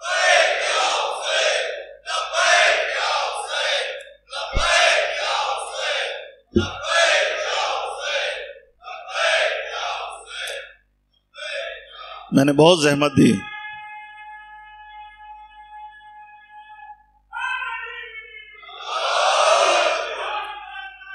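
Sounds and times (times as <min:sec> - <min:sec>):
crowd chanting a religious slogan in unison: 0:00.0 - 0:10.8, 0:11.4 - 0:12.4, 0:18.7 - 0:21.1
sharp low thumps: 0:04.5 - 0:04.9, 0:06.6 - 0:06.8
speech: 0:06.6 - 0:06.8, 0:12.4 - 0:13.5.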